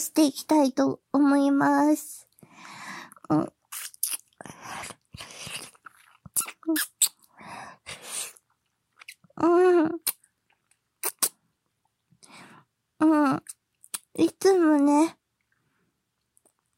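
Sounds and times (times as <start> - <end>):
speech: 0.0 - 3.6, 6.7 - 6.9, 9.4 - 10.1, 13.0 - 13.6, 14.2 - 15.2
ASMR mouth and lip sounds: 3.2 - 12.0, 13.2 - 14.5.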